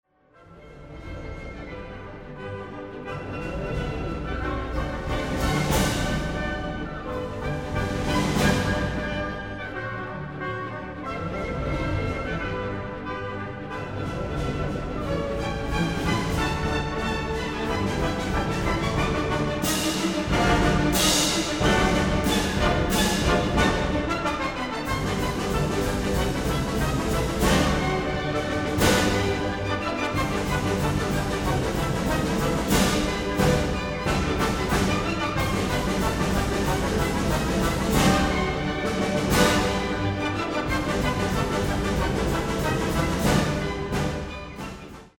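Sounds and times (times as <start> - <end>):
string quartet playing polka: 0.4 - 45.1.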